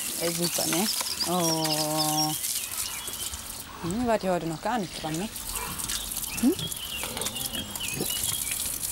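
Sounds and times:
speech: 0.2s - 2.5s, 3.8s - 5.4s, 6.4s - 6.8s
pigs grunting: 5.6s - 8.4s.

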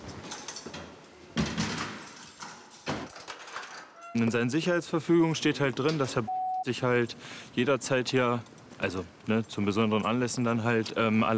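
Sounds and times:
prison door being locked with keys: 0.0s - 4.4s, 9.3s - 10.6s
speech: 4.2s - 11.3s.

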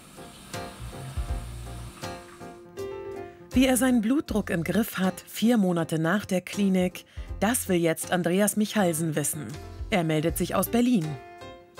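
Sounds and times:
shower water spraying on legs: 0.0s - 2.6s
speech: 3.6s - 11.3s.

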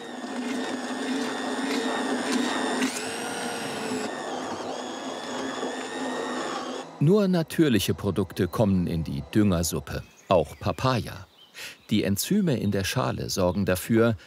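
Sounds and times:
machine pureeing fish for fermented fertilizer: 0.0s - 9.7s
speech: 7.0s - 14.2s.

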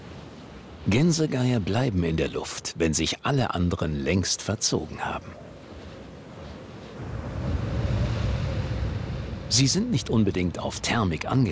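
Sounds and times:
speech: 0.9s - 5.5s, 9.5s - 11.5s
strong wind gusting across open sea: 5.6s - 11.5s.

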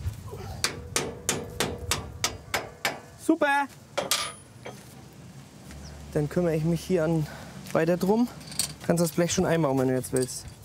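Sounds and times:
hammer blows driving a bolt back into place on a machine: 0.6s - 3.1s, 4.0s - 4.8s
speech: 3.3s - 3.8s, 6.1s - 10.6s.

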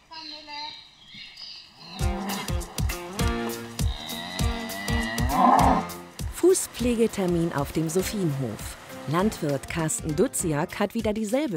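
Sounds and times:
cows mooing while being herded: 1.8s - 9.4s
speech: 6.6s - 11.5s.

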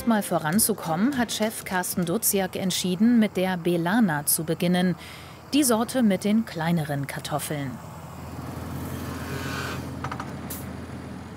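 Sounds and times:
speech: 0.0s - 7.9s
subsoiler rig engine droning while driving over a potato field: 0.0s - 11.3s.

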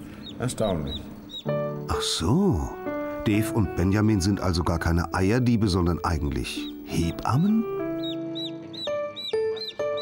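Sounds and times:
newly hatched chick peeping loudly: 0.0s - 1.8s, 7.4s - 10.0s
speech: 0.4s - 7.8s.

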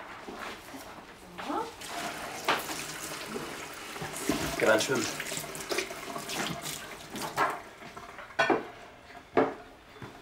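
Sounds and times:
running tap water splashing as lettuce is washed: 1.9s - 8.6s
speech: 4.6s - 5.2s.

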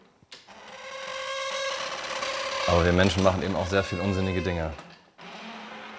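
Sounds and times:
unoiled mechanical smoking-machine artwork squeaking: 0.8s - 4.8s
speech: 2.7s - 4.9s.

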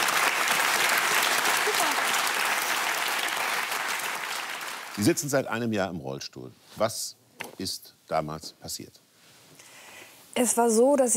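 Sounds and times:
audience applause: 0.0s - 5.3s
speech: 5.0s - 9.0s, 10.4s - 11.1s.

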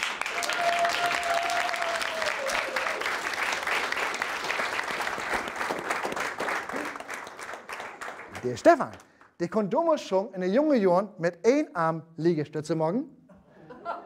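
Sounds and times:
audience applause: 0.0s - 9.1s
speech: 8.4s - 13.2s
laughter: 13.3s - 14.0s.

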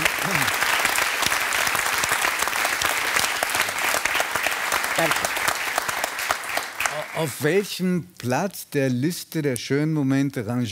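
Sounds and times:
applause: 0.0s - 7.5s
speech: 5.0s - 5.3s, 7.2s - 10.7s.

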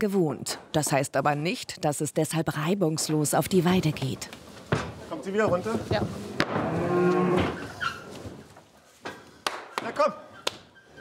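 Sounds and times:
speech: 0.0s - 6.3s
shuffling: 2.8s - 9.4s
mother cow mooing: 6.6s - 7.7s.

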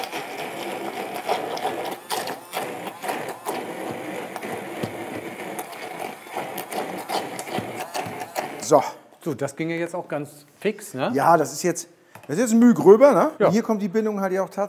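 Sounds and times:
blender motor pureeing braised parsnip and pepper: 0.0s - 9.0s
speech: 8.7s - 14.6s.

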